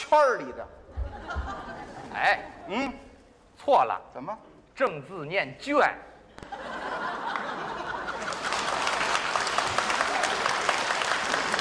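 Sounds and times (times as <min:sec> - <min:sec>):
speech: 0:00.1 - 0:06.7
audience laughing: 0:00.9 - 0:03.0, 0:06.4 - 0:10.5
audience applause: 0:06.8 - 0:11.5.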